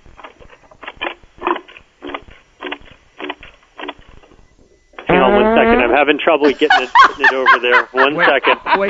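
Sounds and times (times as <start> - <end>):
Doggy Doo toy fart sound: 5.1 - 6.0
speech: 5.4 - 8.8
laughter: 6.2 - 8.8.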